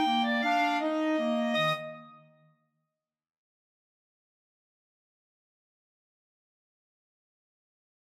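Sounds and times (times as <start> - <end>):
clarinet duet: 0.0 - 2.3.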